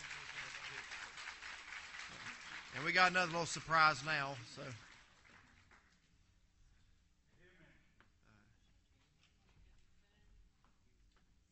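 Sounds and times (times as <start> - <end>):
audience applause: 0.0 - 5.9
speech: 2.8 - 4.9.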